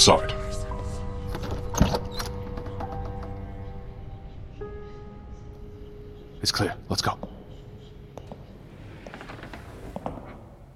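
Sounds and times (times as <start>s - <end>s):
speech: 0.0s - 0.4s, 6.4s - 7.4s
door opening: 1.2s - 3.8s, 8.1s - 10.7s.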